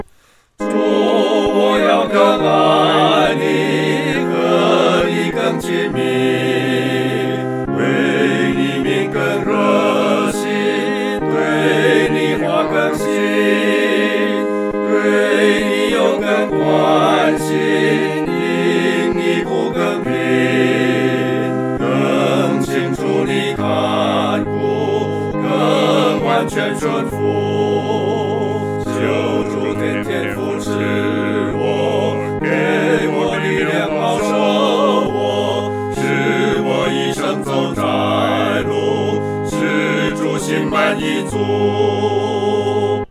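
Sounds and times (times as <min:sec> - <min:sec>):
four-part choir singing: 0:00.6 - 0:43.1.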